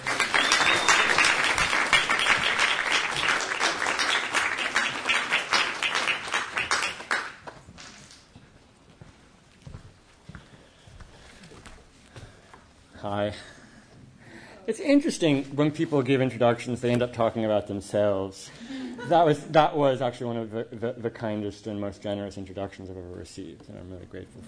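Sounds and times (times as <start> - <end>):
audience applause welcoming a poet to the stage: 0.0 - 7.5
speech: 14.7 - 24.4.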